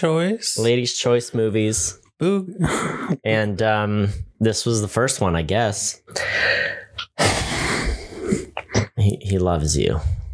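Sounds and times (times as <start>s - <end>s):
speech: 0.0s - 7.4s, 8.3s - 10.2s
dog sniffing at the microphone: 7.0s - 8.8s.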